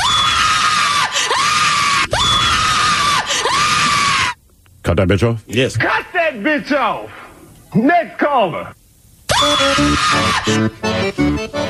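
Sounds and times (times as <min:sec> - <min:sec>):
woman screaming hysterically: 0:00.0 - 0:04.4, 0:09.3 - 0:10.6
speech: 0:04.9 - 0:08.8, 0:09.4 - 0:11.2.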